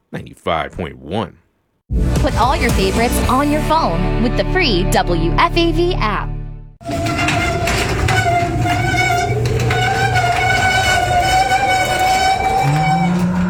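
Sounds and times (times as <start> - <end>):
speech: 0.1 - 7.4
low rumbling grind: 1.9 - 13.4
long high-pitched metallic squeals: 6.8 - 13.4
noisy creaking old garage door: 6.8 - 13.4.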